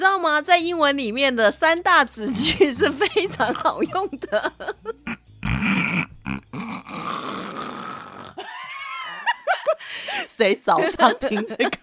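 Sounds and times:
speech: 0:00.0 - 0:05.0, 0:10.4 - 0:11.8
person imitating snoring: 0:02.3 - 0:04.0, 0:05.0 - 0:08.5
laughter: 0:02.4 - 0:05.2, 0:08.4 - 0:09.9, 0:10.7 - 0:11.8.

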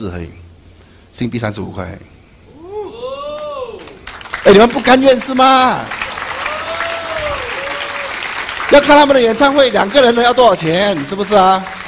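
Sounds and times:
speech: 0:00.0 - 0:00.4, 0:01.1 - 0:02.1, 0:04.5 - 0:06.0, 0:08.7 - 0:11.8
audience applause: 0:03.3 - 0:11.8.

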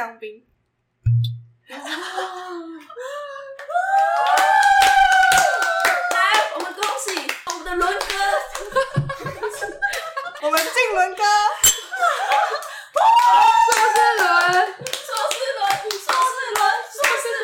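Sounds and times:
speech: 0:00.0 - 0:03.2, 0:10.4 - 0:11.8
laughter: 0:01.7 - 0:03.7, 0:07.6 - 0:11.0, 0:11.8 - 0:13.0
voices whooping and cheering: 0:03.0 - 0:06.7, 0:12.1 - 0:14.8
group applause with many hands clapping: 0:03.6 - 0:10.8, 0:12.2 - 0:17.4.

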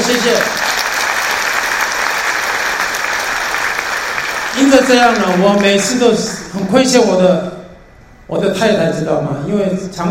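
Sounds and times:
audience applause: 0:00.0 - 0:06.0
speech: 0:00.1 - 0:00.6, 0:04.6 - 0:07.5, 0:08.3 - 0:10.1.

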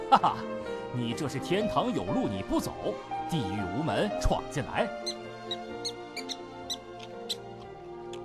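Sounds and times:
speech: 0:00.1 - 0:06.0
little mouse squeaking: 0:04.9 - 0:07.5.

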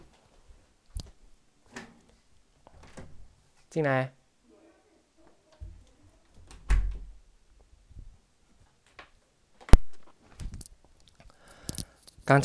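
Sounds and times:
speech: 0:03.7 - 0:04.2, 0:12.3 - 0:12.4
door thump: 0:06.4 - 0:07.2.

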